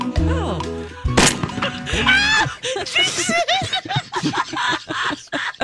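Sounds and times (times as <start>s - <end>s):
several people talking and laughing: 0.2s - 5.6s
shotgun blast sound effect: 1.2s - 2.0s.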